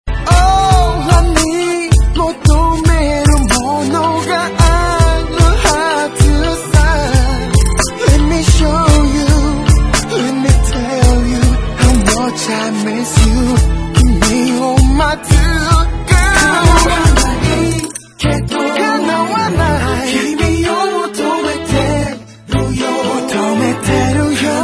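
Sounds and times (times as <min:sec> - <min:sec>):
sad tango music: 0:00.1 - 0:24.6.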